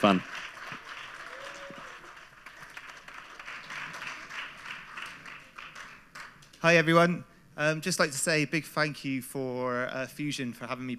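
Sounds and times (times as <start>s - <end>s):
speech: 0.0s - 0.4s, 6.6s - 10.9s
audience applause: 0.0s - 6.4s.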